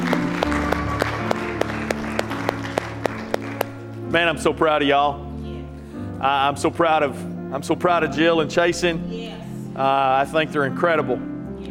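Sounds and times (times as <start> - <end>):
audience hand clapping: 0.0 - 3.9
speech: 4.1 - 5.2, 6.2 - 11.3.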